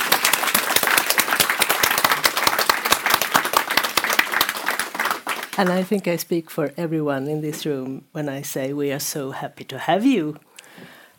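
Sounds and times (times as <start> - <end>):
audience applauding: 0.0 - 5.9
speech: 5.6 - 10.5.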